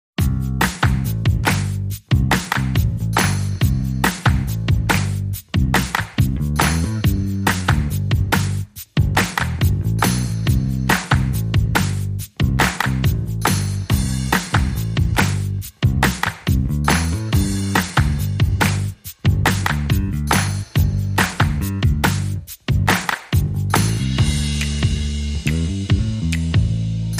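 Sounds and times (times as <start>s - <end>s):
bass: 0.2s - 27.1s
drums: 0.2s - 27.1s.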